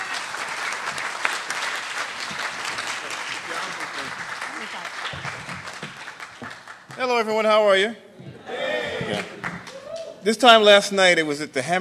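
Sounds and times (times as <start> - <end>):
audience applause welcoming guests to the stage: 0.0 - 7.3, 8.6 - 10.1
speech: 7.0 - 8.0, 10.2 - 11.7.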